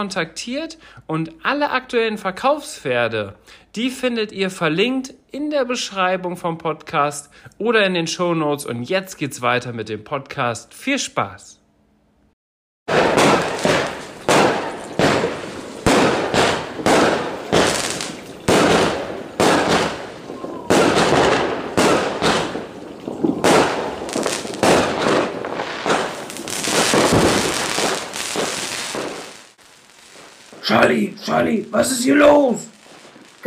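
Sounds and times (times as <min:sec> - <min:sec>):
speech: 0:00.0 - 0:11.6, 0:30.9 - 0:32.7
New Year's Eve fireworks banging and crackling: 0:12.9 - 0:33.4.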